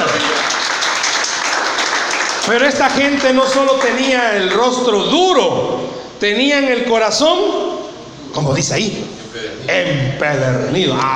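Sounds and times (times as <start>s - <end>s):
audience applause: 0.0s - 4.6s
speech: 2.5s - 11.1s.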